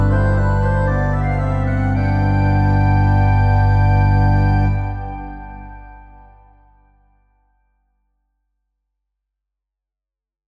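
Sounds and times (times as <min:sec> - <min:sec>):
chorale prelude: 0:00.0 - 0:06.8.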